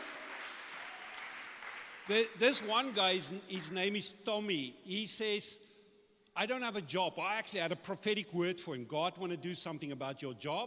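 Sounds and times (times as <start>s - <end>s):
audience applause: 0.0s - 3.0s
speech: 2.1s - 5.6s, 6.4s - 10.6s.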